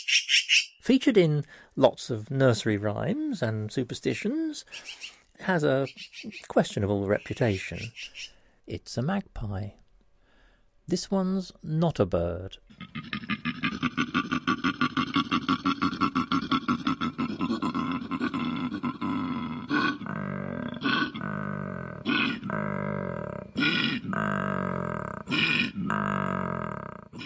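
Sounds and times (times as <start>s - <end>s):
speech: 0.1s - 9.8s, 10.9s - 13.1s
koala grunting bellow: 12.8s - 27.2s.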